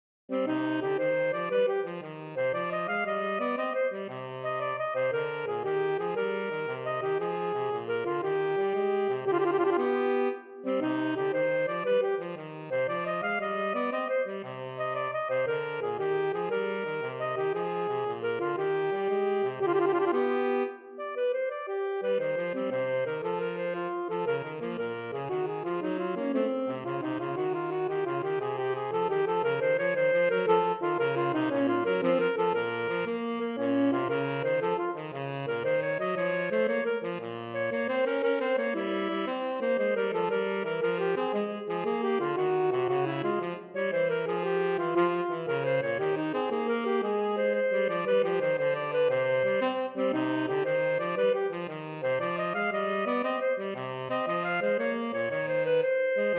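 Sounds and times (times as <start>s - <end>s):
duo playing a fast gigue movement of a sonata in C minor: 0.3s - 56.3s.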